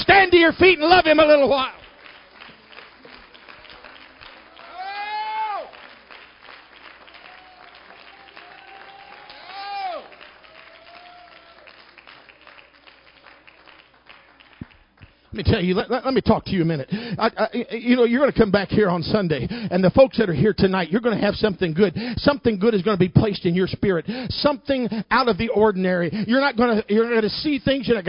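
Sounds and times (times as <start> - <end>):
audience clapping in praise: 0.1 - 17.1
speech: 0.3 - 1.8, 15.4 - 28.0
audience cheering loudly: 1.4 - 13.8.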